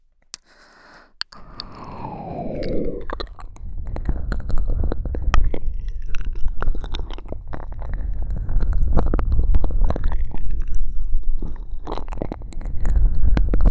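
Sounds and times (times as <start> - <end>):
ear licking: 0.3 - 13.6
breathy exhales: 0.4 - 5.4.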